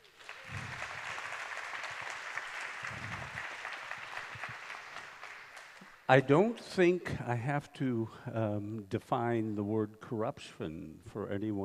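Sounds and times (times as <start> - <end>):
audience applause welcoming a speaker to a talk: 0.0 - 6.0
speech: 6.1 - 11.6.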